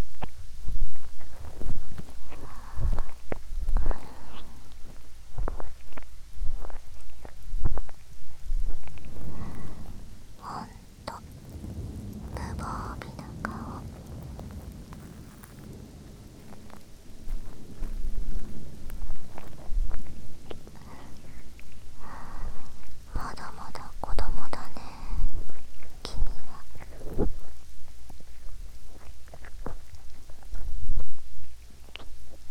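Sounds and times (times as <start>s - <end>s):
rain: 0.0s - 32.4s
person whispering: 10.4s - 11.3s, 12.4s - 14.0s, 20.7s - 27.6s.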